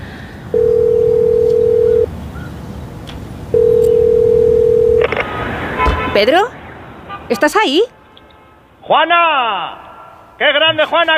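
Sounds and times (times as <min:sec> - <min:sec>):
telephone ringing: 0:00.5 - 0:02.1, 0:03.6 - 0:05.1
speech: 0:06.2 - 0:06.6, 0:07.3 - 0:07.9, 0:08.9 - 0:09.8, 0:10.4 - 0:11.1.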